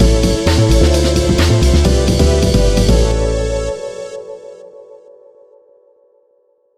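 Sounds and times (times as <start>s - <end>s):
victory theme music: 0.0s - 4.2s.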